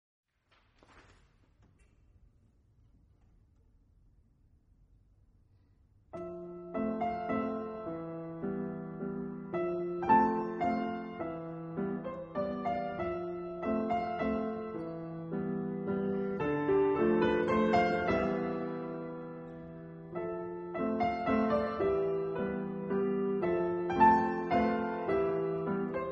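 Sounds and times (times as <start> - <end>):
solo piano: 6.1 - 26.1.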